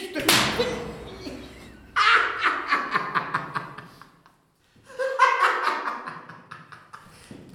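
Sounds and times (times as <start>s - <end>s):
whip lashes: 0.2s - 1.0s
laughter: 0.4s - 7.1s.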